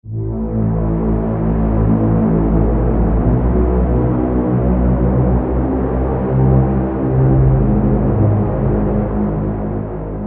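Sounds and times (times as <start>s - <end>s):
synth pad: 0.0s - 10.2s.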